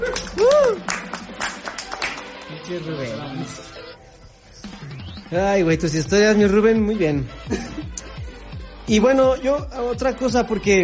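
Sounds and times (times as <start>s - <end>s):
applause: 0.0s - 2.7s
speech: 2.7s - 3.8s, 5.3s - 7.8s, 8.9s - 10.8s.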